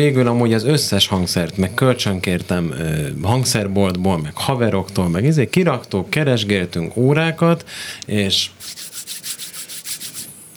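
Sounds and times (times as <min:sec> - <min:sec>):
speech: 0:00.0 - 0:08.8
two palms rubbing together briskly: 0:08.6 - 0:10.5.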